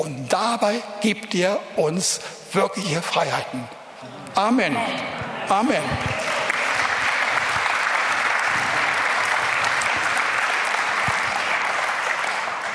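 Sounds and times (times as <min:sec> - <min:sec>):
speech: 0:00.0 - 0:06.2
audience applauding: 0:05.5 - 0:12.7.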